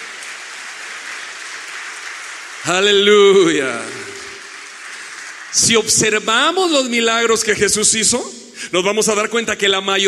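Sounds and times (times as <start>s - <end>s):
audience applause: 0.0s - 7.1s
speech: 2.6s - 4.0s, 5.6s - 10.0s.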